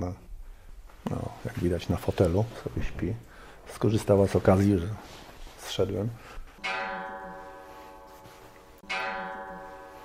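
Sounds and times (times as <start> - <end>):
speech: 1.1 - 6.8
century-old clock chiming: 6.6 - 10.0.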